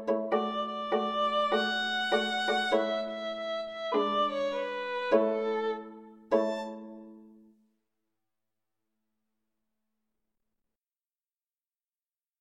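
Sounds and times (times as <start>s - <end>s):
violin and viola duet: 0.0s - 7.1s.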